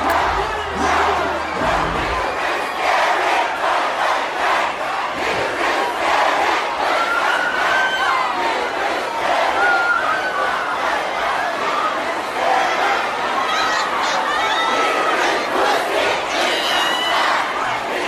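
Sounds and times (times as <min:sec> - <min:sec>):
music track: 0:00.0 - 0:03.1
crowd cheering and shouting: 0:00.0 - 0:18.0.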